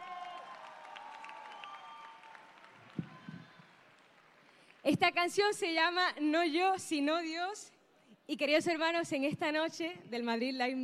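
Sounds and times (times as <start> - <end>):
audience applause: 0.0 - 4.8
speech: 4.8 - 10.8.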